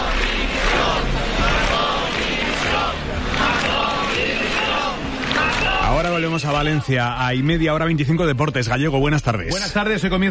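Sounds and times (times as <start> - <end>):
large crowd shouting protest chants: 0.0 - 6.9
speech: 6.4 - 10.2.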